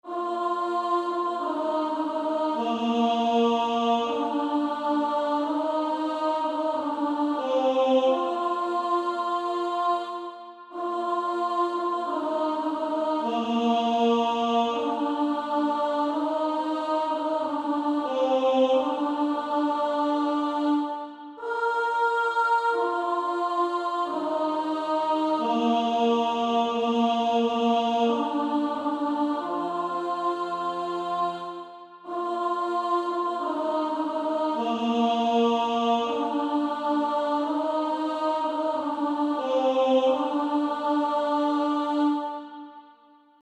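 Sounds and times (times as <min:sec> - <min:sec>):
female choir singing A1: 0:00.0 - 0:43.4.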